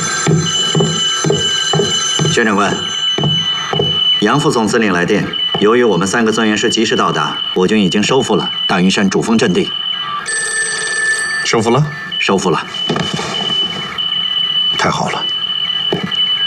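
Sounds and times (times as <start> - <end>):
telephone ringing: 0.0 - 16.4.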